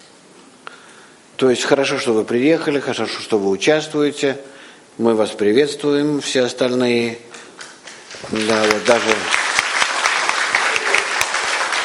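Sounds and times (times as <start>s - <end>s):
speech: 1.4s - 7.4s, 8.3s - 9.4s
audience applause for a visiting group: 7.6s - 11.8s.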